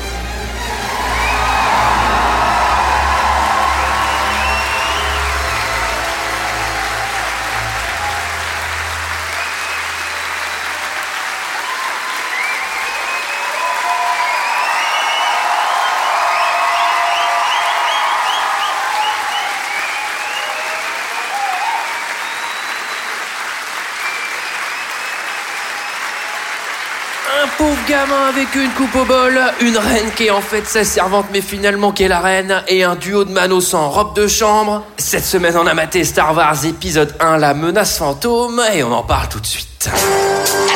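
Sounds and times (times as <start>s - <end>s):
audience applause: 0.0s - 32.1s
cheers and whoops: 0.5s - 29.6s
speech: 27.9s - 40.7s.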